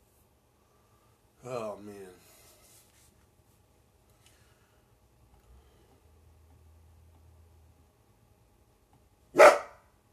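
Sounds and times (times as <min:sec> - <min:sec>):
speech: 0:01.4 - 0:02.2
dog barking: 0:09.3 - 0:09.9.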